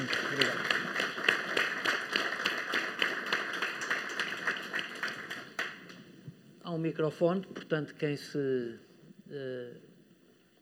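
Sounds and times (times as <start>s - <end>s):
round of applause from a crowd: 0.0s - 5.9s
speech: 6.9s - 9.9s.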